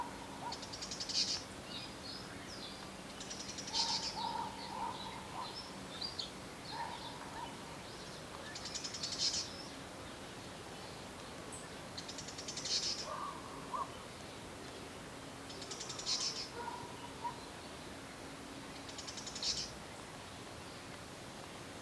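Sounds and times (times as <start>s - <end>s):
background hiss: 0.0s - 21.7s
great tit calls: 0.4s - 1.5s, 3.2s - 7.6s, 12.0s - 14.0s, 15.6s - 17.5s, 18.9s - 19.7s.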